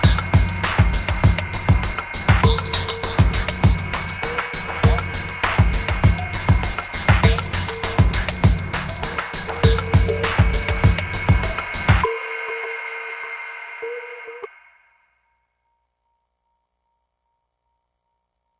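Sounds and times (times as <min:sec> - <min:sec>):
glacial hip hop: 0:00.0 - 0:12.6.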